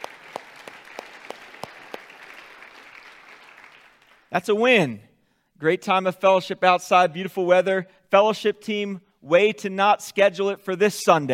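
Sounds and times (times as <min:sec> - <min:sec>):
audience applauding: 0:00.0 - 0:04.3
speech: 0:04.3 - 0:11.3.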